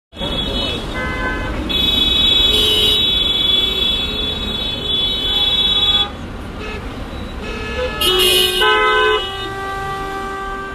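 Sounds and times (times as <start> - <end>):
car horns: 0.1 - 10.7
car traffic jam: 0.1 - 10.7.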